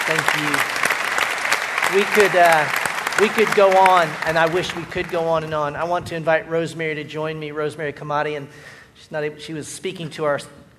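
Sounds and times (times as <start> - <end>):
audience applause: 0.0 - 5.6
speech: 0.1 - 0.9, 1.9 - 10.6.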